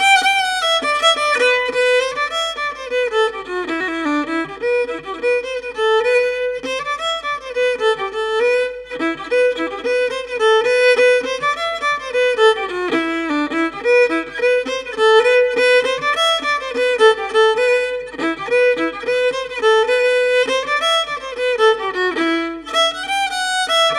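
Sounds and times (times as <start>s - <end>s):
solo fiddle: 0.0s - 23.9s.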